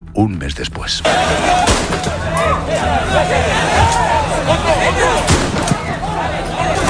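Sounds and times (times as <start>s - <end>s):
speech: 0.2s - 5.3s
Policía Nacional gunshots fired into the air: 1.6s - 2.1s, 5.3s - 5.8s.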